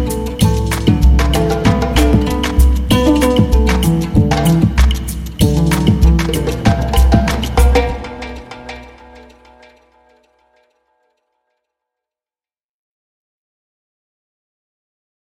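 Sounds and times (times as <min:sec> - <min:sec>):
Gambian harp music: 0:00.0 - 0:09.4.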